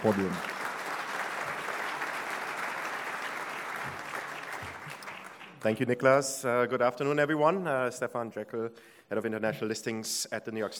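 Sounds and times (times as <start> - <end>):
speech: 0.0 - 0.6, 5.6 - 10.7
crowd applauding for sponsors: 0.0 - 5.7.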